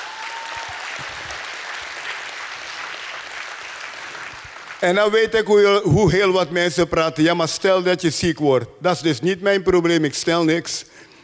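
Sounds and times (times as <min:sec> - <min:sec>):
audience applause: 0:00.0 - 0:04.9
speech: 0:04.8 - 0:11.0.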